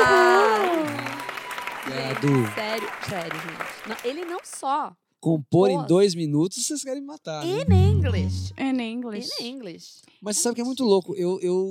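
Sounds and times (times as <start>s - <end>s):
round of applause: 0.0s - 4.6s
speech: 2.1s - 11.6s.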